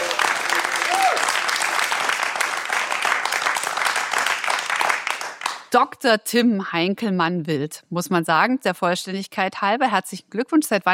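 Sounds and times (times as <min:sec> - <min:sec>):
live audience applause: 0:00.0 - 0:05.6
speech: 0:05.7 - 0:10.9.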